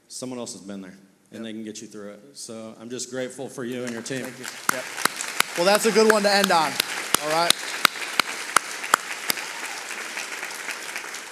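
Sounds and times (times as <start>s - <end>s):
room hiss: 0.0s - 11.3s
speech: 0.1s - 7.7s
audience applause for panelists: 3.8s - 11.3s.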